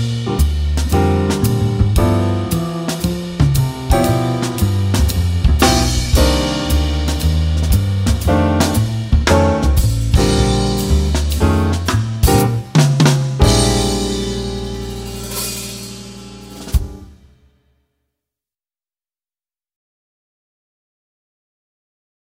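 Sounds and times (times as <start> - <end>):
jazz backing band without alto saxophone: 0.0 - 17.3.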